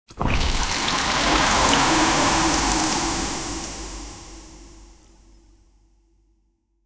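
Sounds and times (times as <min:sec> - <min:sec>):
deep sloshing of thick liquid: 0:00.0 - 0:04.0.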